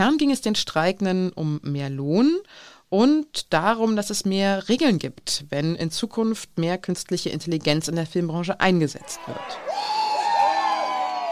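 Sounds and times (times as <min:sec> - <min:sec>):
speech: 0:00.0 - 0:09.9
crowd cheering: 0:09.0 - 0:11.3.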